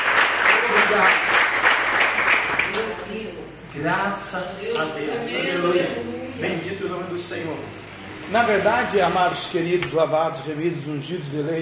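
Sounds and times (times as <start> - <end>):
audience applause: 0.0 - 2.9
speech: 0.9 - 1.3, 3.7 - 11.6.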